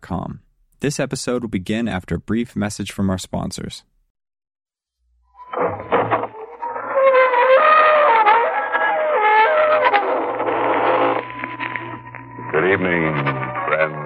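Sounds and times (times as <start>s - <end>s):
speech: 0.1s - 4.0s, 12.7s - 13.3s
squeaking door opening: 5.4s - 12.0s.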